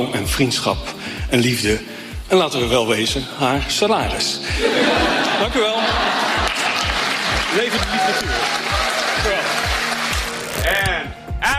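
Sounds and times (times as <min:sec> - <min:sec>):
speech: 0:00.0 - 0:06.3, 0:07.6 - 0:08.7
laughter: 0:04.5 - 0:09.6
audience applause: 0:05.8 - 0:10.7.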